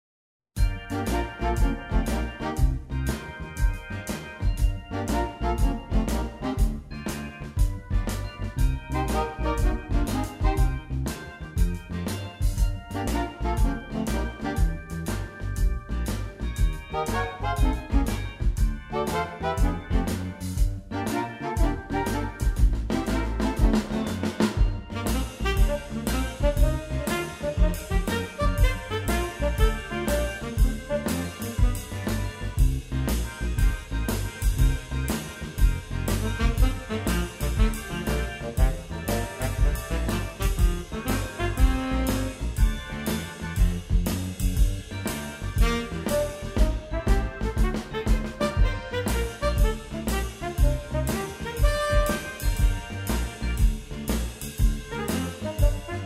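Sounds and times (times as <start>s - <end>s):
blues music: 0.6s - 56.0s.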